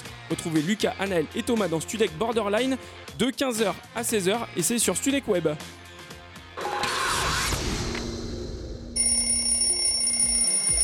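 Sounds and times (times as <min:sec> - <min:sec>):
speech: 0:00.3 - 0:05.8
whooshing crash: 0:06.6 - 0:09.0
alarm clock ringing as a wake-up effect: 0:09.0 - 0:10.8.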